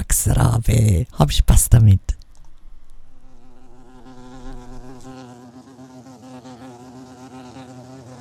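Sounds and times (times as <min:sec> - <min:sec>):
speech: 0:00.2 - 0:02.2
bumblebee buzzing: 0:02.2 - 0:08.2.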